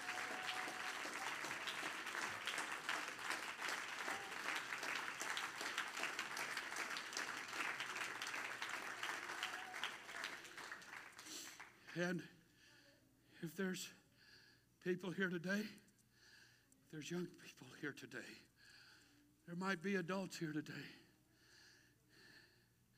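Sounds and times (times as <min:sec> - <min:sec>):
audience clapping hands: 0:00.0 - 0:12.0
speech: 0:12.0 - 0:12.4, 0:13.4 - 0:14.0, 0:14.8 - 0:15.8, 0:16.9 - 0:18.5, 0:19.5 - 0:21.0.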